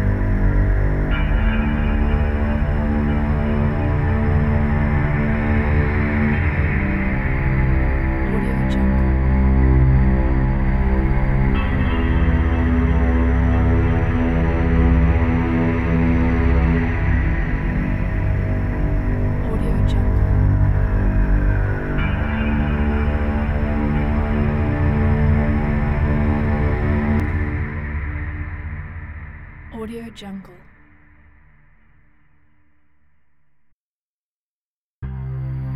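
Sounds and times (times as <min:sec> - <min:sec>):
dark atmospheric soundscape: 0:00.0 - 0:33.0.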